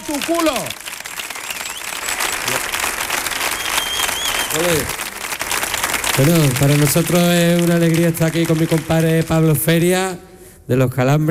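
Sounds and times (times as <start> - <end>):
audience applause: 0.0 - 9.9
speech: 0.1 - 0.9, 4.5 - 5.0, 6.2 - 11.3
faint whistles or cheers: 0.1 - 4.9.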